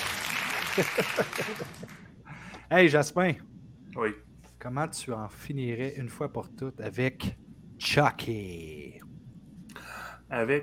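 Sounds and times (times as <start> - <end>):
crowd applause: 0.0 - 2.1
voices rising above clapping: 0.0 - 2.1
laughter: 0.4 - 2.1
speech: 0.8 - 2.0, 2.7 - 9.1, 10.3 - 10.6.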